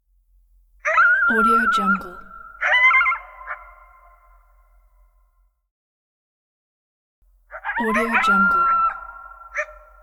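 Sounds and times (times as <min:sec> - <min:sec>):
coyote: 0:00.8 - 0:04.5, 0:07.5 - 0:10.0.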